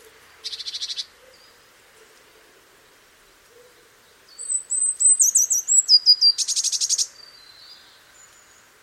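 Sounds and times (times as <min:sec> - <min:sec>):
Eurasian blue tit song: 0:00.0 - 0:01.6, 0:04.1 - 0:08.8.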